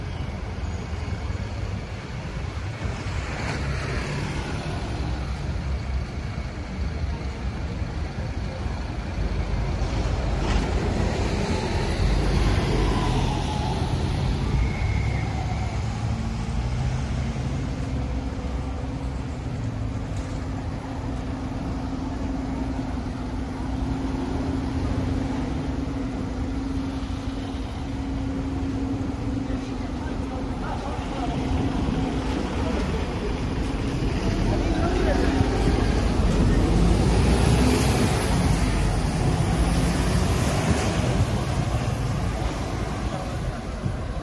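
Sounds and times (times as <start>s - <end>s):
engine drone: 0.0s - 44.2s
passing traffic rumble in Tel Aviv: 0.0s - 44.2s.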